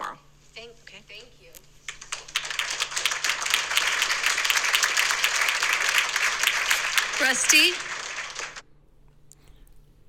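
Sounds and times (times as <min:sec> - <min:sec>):
audience applause: 0:01.9 - 0:08.6
speech: 0:07.2 - 0:07.9.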